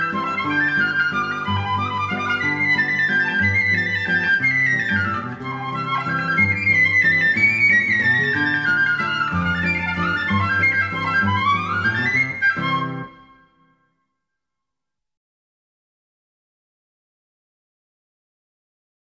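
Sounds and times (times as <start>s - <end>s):
mazurka: 0.0s - 13.7s.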